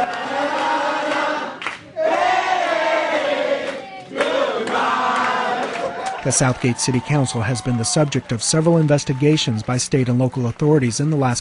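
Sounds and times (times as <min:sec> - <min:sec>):
crowd singing: 0:00.0 - 0:06.0
crowd cheering: 0:00.0 - 0:11.3
speech: 0:06.2 - 0:11.3.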